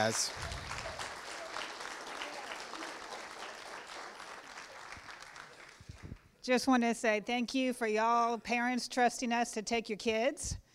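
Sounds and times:
speech: 0.0s - 0.6s, 6.4s - 10.6s
audience applause: 0.0s - 6.2s.

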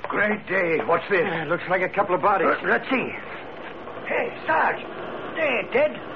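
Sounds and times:
speech: 0.3s - 3.3s, 4.1s - 6.1s
car engine insect-like buzzing hum: 3.0s - 6.1s.

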